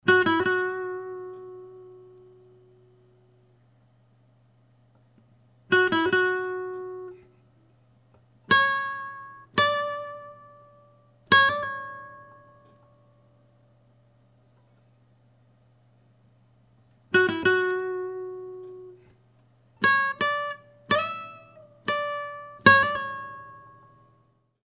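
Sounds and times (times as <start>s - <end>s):
solo guitar: 0.0s - 3.8s, 4.9s - 15.0s, 16.8s - 24.6s.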